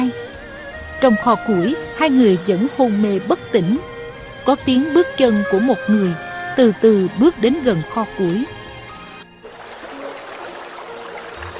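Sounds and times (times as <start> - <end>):
speech: 1.0 - 8.6
water dripping: 9.4 - 11.5.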